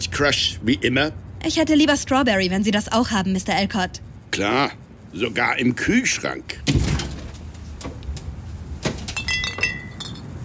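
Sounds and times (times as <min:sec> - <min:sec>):
speech: 0:00.0 - 0:06.8
low rumble: 0:00.0 - 0:10.4
glass soda bottles clinking: 0:08.9 - 0:10.4.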